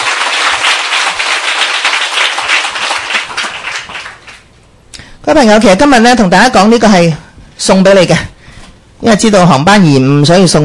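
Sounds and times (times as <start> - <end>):
audience applause: 0.0 - 4.4
speech: 5.3 - 8.3, 9.0 - 10.6.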